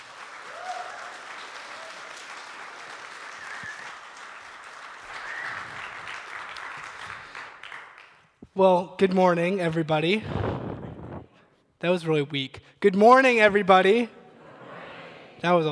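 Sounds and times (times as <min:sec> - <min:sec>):
congregation applause at a church service welcoming a youth intern: 0:00.0 - 0:08.4
speech: 0:08.6 - 0:10.4, 0:11.8 - 0:14.2, 0:15.4 - 0:15.7.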